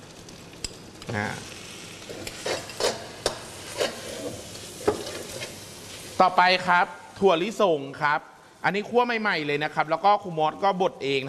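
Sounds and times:
dried shrimp frying in a sizzling pan: 0.0s - 9.2s
speech: 1.1s - 2.5s, 6.2s - 11.2s
utensil scraping a pan: 2.1s - 6.2s.

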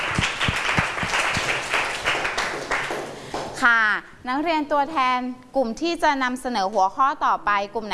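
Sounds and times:
classroom applause for student representatives: 0.0s - 3.6s
speech: 3.6s - 7.9s.

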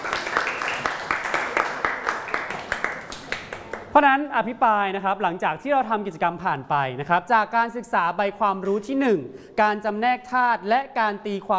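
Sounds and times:
class clapping hands: 0.0s - 3.9s
speech: 4.0s - 11.5s.

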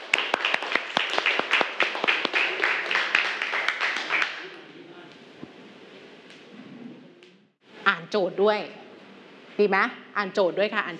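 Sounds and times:
classroom group clapping for students: 0.0s - 4.6s
speech: 8.1s - 8.8s, 9.6s - 10.9s.

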